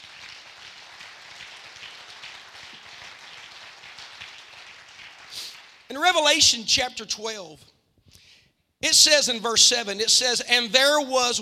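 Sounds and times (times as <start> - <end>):
audience clapping hands: 0.0 - 6.4
speech: 5.9 - 7.7, 8.8 - 11.4.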